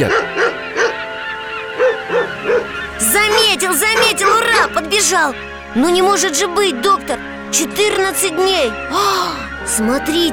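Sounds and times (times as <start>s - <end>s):
speech: 0.0s - 0.3s, 3.5s - 10.3s
dog barking to attract attention: 0.0s - 1.1s, 1.8s - 4.9s.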